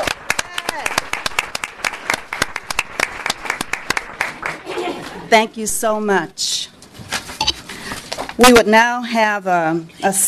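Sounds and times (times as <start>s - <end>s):
crowd hand clapping: 0.0s - 4.9s
speech: 5.3s - 6.7s, 8.4s - 10.2s.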